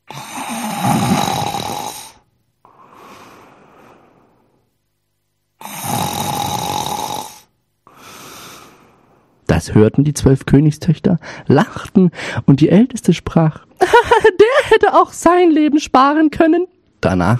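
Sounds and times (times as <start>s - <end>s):
person imitating exaggerated snoring: 0.0s - 4.0s, 5.6s - 8.9s
speech: 9.6s - 14.1s, 14.8s - 17.3s.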